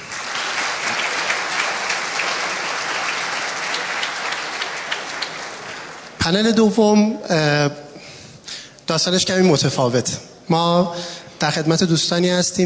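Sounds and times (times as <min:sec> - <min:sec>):
audience applause from a young crowd at a startup entrepreneurs' Yalda night event: 0:00.0 - 0:06.2
speech: 0:06.3 - 0:07.8, 0:08.9 - 0:12.6.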